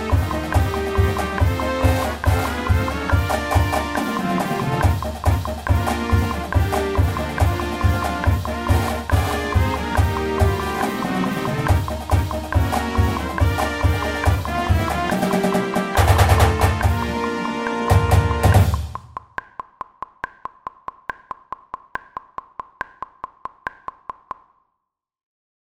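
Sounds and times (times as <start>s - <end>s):
MIDI music: 0.0s - 19.3s.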